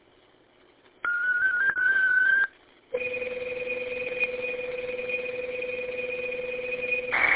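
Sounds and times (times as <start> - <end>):
pair of pure tones over radio: 1.0 - 7.1
digital data transmission signal over radio: 1.0 - 7.2
high whistle-like tone over radio: 1.1 - 5.4.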